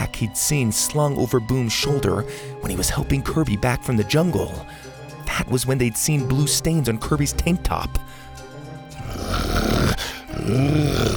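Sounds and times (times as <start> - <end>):
speech: 0.2 - 8.2, 10.4 - 11.1
animal growling loudly: 9.0 - 11.1.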